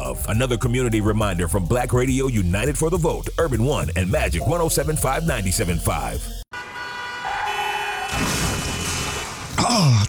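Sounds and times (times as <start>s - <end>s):
speech: 0.1s - 6.4s, 9.7s - 10.0s
car horn blaring in a radio ad's truck crash sound effect: 6.5s - 9.5s.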